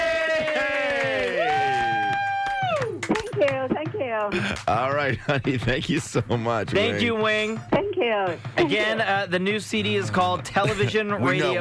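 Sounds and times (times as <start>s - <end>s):
small audience cheering with whoops: 0.0s - 3.3s
scattered claps: 0.0s - 6.8s
speech: 4.2s - 11.6s.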